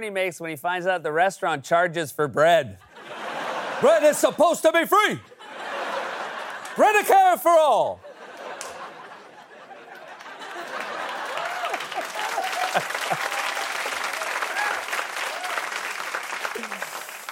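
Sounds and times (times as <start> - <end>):
speech: 0.0 - 3.2, 3.8 - 5.3, 6.8 - 8.1
laughter: 2.8 - 14.9
audience applause: 6.0 - 9.2, 9.8 - 17.3.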